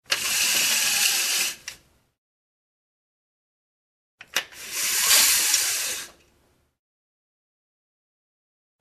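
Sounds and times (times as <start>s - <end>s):
window blinds being raised and lowered: 0.1s - 1.8s, 4.3s - 6.2s.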